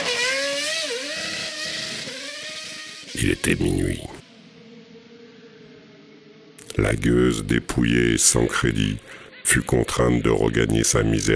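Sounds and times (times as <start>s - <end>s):
Ferrari sports car engine roaring as it drives away: 0.0s - 4.1s
speech: 3.2s - 4.1s, 6.8s - 11.3s.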